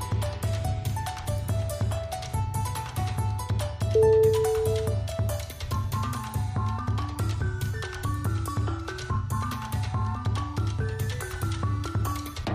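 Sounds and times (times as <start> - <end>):
cheerful music: 0.2 - 12.4.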